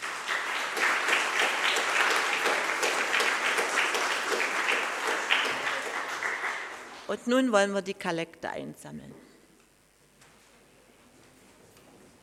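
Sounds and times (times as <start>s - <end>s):
audience applause: 0.0s - 7.1s
speech: 7.1s - 9.3s.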